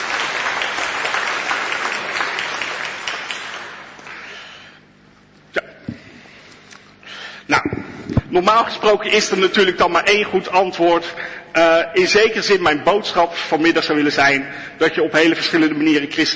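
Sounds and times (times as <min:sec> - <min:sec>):
audience applause: 0:00.0 - 0:04.6
speech: 0:08.3 - 0:16.3.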